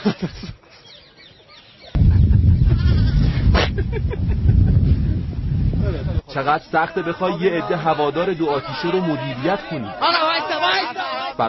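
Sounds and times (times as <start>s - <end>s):
speech: 0.0s - 0.6s, 3.8s - 11.4s
animals and birds interrupting a recording: 0.0s - 3.5s.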